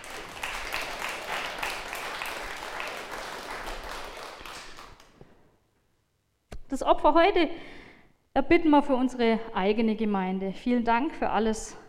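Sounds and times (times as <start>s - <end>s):
audience applause: 0.0s - 5.2s
speech: 6.8s - 7.8s, 8.4s - 11.8s.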